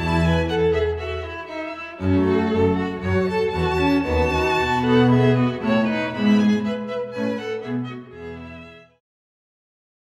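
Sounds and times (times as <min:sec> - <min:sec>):
classical music: 0:00.0 - 0:09.0.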